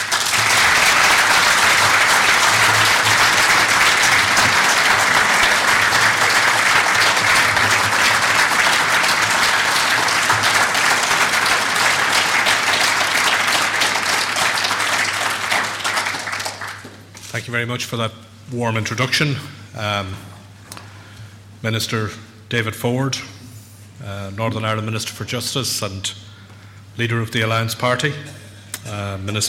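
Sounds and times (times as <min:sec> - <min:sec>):
audience applause welcoming Eamon Gilmore, TD, on stage: 0:00.0 - 0:17.1
speech: 0:17.5 - 0:20.3, 0:21.6 - 0:23.4, 0:24.0 - 0:26.4, 0:27.0 - 0:29.4.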